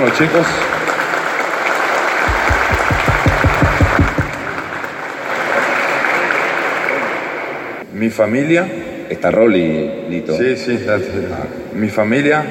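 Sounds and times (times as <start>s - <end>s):
speech: 0.0s - 0.8s, 8.0s - 12.4s
audience applause: 0.0s - 7.6s.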